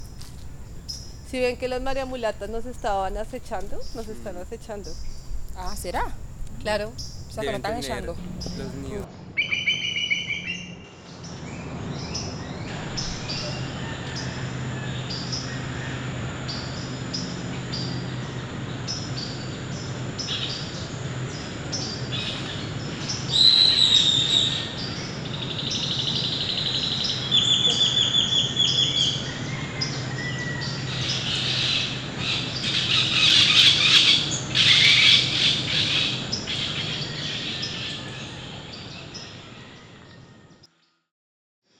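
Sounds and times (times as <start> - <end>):
outdoor hiss: 0.0 - 9.0
bird calls from a bird that vocalizes like a small parrot: 0.0 - 10.9, 12.1 - 40.7
speech: 1.3 - 9.2.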